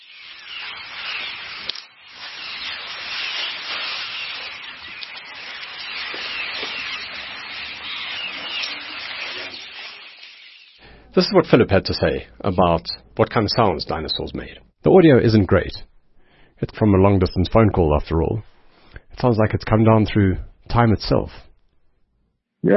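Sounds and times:
herd of elephants grazing, rustling in bush: 0.0s - 10.8s
speech: 11.2s - 15.9s, 16.6s - 18.5s, 19.2s - 21.5s.

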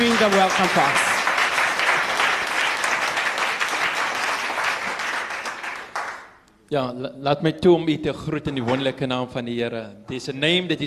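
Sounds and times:
audience applause: 0.0s - 6.4s
speech: 0.2s - 1.1s, 6.7s - 10.8s.

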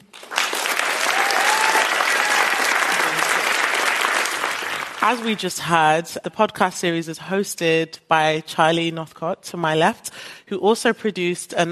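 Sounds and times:
audience applause welcoming a panel on stage: 0.0s - 5.3s
speech: 5.0s - 11.7s.

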